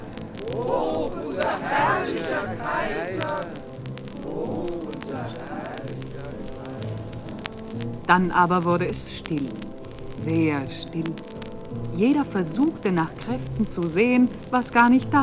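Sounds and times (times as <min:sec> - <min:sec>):
crowd cheering: 0:00.0 - 0:07.4
speech: 0:00.6 - 0:03.6, 0:08.1 - 0:15.2.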